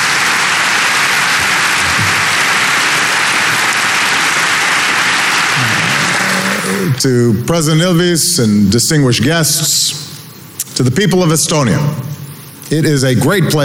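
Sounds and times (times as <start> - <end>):
round of applause: 0.0 - 7.0
speech: 6.9 - 10.0, 10.8 - 13.6.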